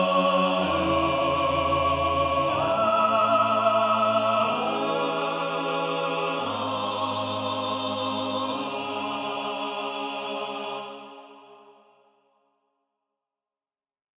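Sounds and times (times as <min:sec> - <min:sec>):
contrapuntal music: 0:00.0 - 0:10.9.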